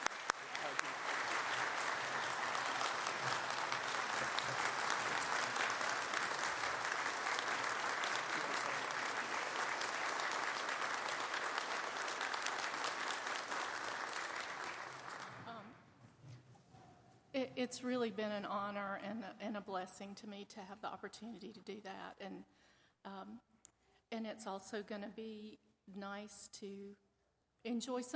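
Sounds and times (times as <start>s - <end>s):
audience applause: 0.0s - 15.6s
speech: 17.5s - 23.4s, 24.4s - 27.0s, 27.6s - 28.1s.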